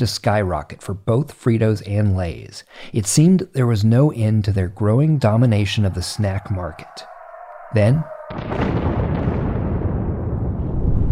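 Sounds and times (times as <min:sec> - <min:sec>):
speech: 0:00.0 - 0:07.1, 0:07.7 - 0:09.2
bombing explosion sound effect for the 1941 attack on Pearl Harbor: 0:08.2 - 0:11.1.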